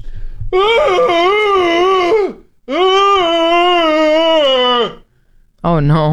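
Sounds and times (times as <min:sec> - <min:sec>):
person imitating a loud dog's wail: 0:00.6 - 0:05.0.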